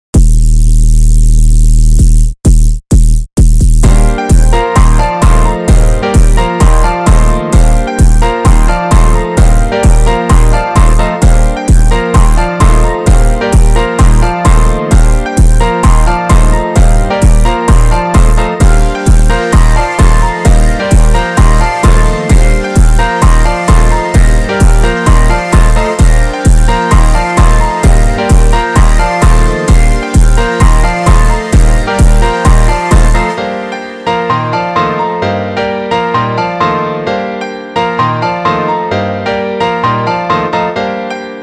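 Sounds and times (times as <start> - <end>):
instrumental music: 0.1 - 41.4.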